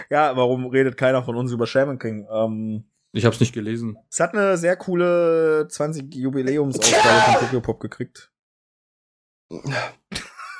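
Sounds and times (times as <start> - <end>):
speech: 0.1 - 8.3, 9.5 - 10.3
person sneezing: 6.8 - 7.6.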